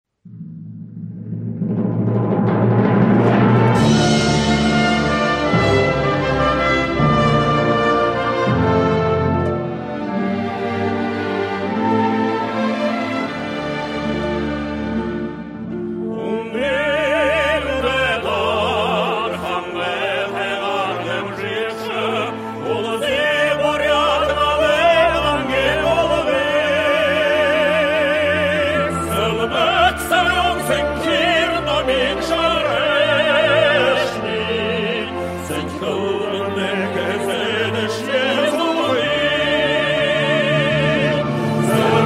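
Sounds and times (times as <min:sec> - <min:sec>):
regional anthem: 0:00.3 - 0:42.0.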